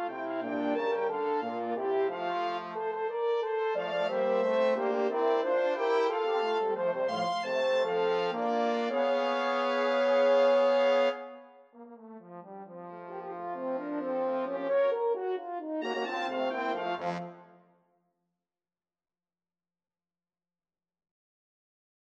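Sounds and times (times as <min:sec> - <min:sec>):
brass quartet playing: 0:00.0 - 0:11.4, 0:12.2 - 0:17.6.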